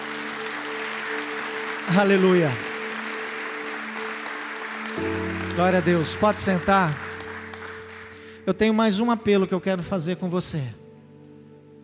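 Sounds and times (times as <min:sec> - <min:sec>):
crowd applause: 0:00.0 - 0:08.4
sustained keyboard chords: 0:00.0 - 0:09.7
speech: 0:01.9 - 0:02.7, 0:05.0 - 0:07.2, 0:08.5 - 0:10.8.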